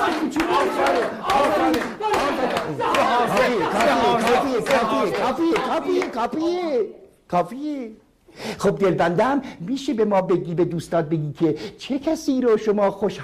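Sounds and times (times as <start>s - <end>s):
audience clapping: 0.0s - 6.4s
excited audience voices shouting and chattering: 0.0s - 6.9s
speech: 4.6s - 13.2s.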